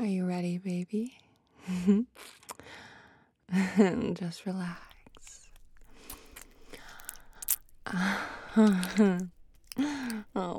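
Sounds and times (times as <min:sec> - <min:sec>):
speech: 0:00.0 - 0:02.8, 0:03.5 - 0:04.9, 0:07.9 - 0:10.5
soft gasps: 0:02.6 - 0:03.3, 0:04.8 - 0:10.4.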